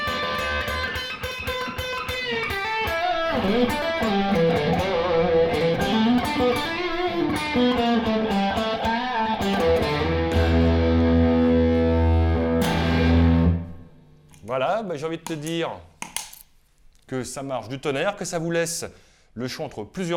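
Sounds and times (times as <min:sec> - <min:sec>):
heavily overdriven electric guitar with boost pedal and gain: 0:00.0 - 0:14.0
speech: 0:03.4 - 0:04.6, 0:14.5 - 0:15.9, 0:17.1 - 0:20.1.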